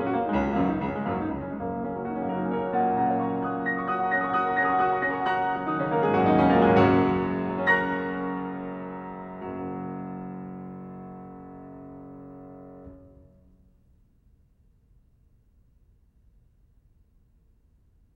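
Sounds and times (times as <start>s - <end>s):
piano etude in G flat major: 0.0s - 13.5s.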